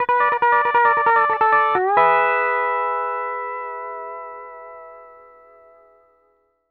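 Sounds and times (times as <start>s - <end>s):
country music loop at 140 BPM: 0.0s - 4.1s.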